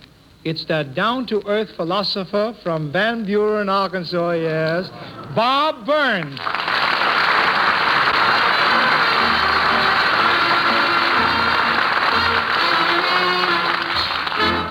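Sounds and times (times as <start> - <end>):
speech: 0.4 - 6.7
studio audience applause: 6.3 - 14.7.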